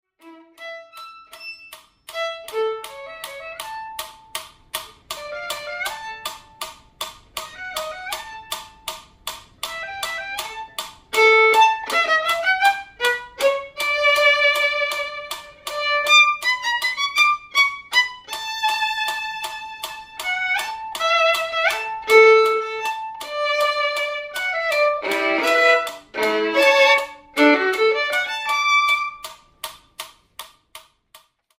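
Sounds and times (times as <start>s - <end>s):
violin demonstration performance of a student concerto: 0.0s - 4.3s, 5.2s - 6.6s, 7.4s - 8.9s, 9.7s - 29.3s.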